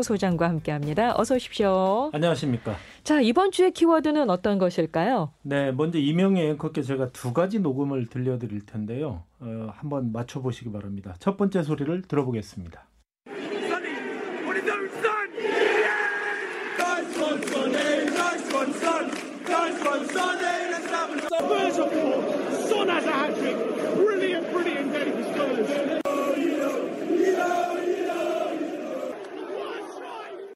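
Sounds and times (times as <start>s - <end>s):
speech: 0.0s - 12.9s
crowd of supporters cheering: 13.3s - 30.5s.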